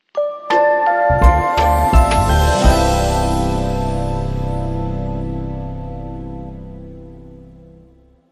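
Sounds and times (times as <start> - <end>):
short musical sting: 1.2 - 8.0.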